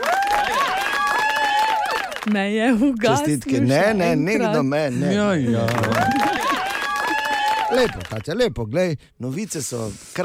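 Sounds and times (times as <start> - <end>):
pitched wavering cheering voices: 0.0 - 2.3, 5.6 - 8.1
audience applauding: 0.0 - 3.6, 5.4 - 8.6
speech: 2.3 - 6.4, 7.7 - 10.2
laughter: 2.8 - 8.1.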